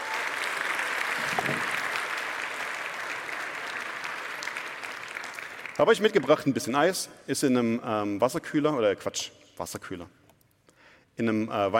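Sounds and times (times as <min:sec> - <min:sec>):
audience applause: 0:00.0 - 0:05.8
speech: 0:05.8 - 0:10.2, 0:11.2 - 0:11.7.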